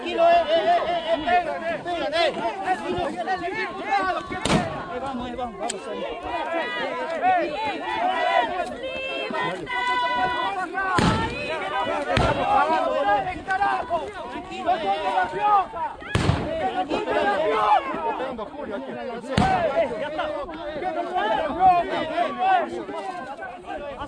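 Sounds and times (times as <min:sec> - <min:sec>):
laughter: 0:00.0 - 0:24.0
protest crowd shouting and talking: 0:00.0 - 0:24.0
police firing gunshots at protesters: 0:04.4 - 0:04.9, 0:11.0 - 0:11.5, 0:16.1 - 0:16.7, 0:19.4 - 0:19.7.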